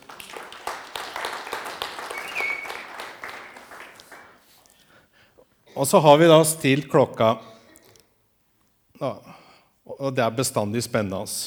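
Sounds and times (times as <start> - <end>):
audience applause: 0.0 - 4.6
speech: 5.8 - 7.5, 9.0 - 9.3, 10.0 - 11.4.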